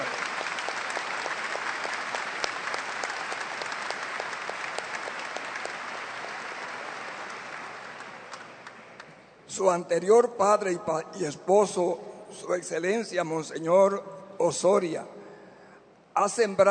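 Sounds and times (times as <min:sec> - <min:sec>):
audience applauding in welcome: 0:00.0 - 0:09.2
speech: 0:09.6 - 0:15.2, 0:16.2 - 0:16.6.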